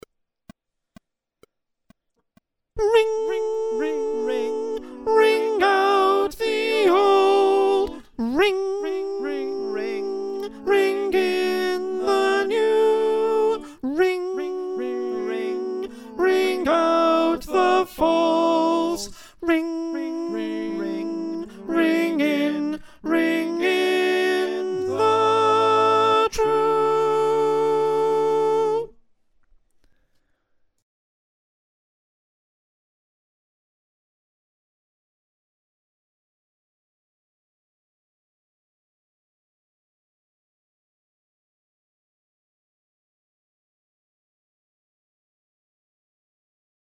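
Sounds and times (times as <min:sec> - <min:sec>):
choir with soprano: 0:02.8 - 0:28.9.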